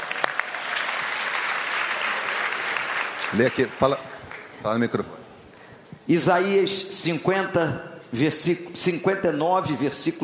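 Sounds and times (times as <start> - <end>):
crowd clapping: 0.0 - 4.5
speech: 3.3 - 5.2, 6.1 - 10.2.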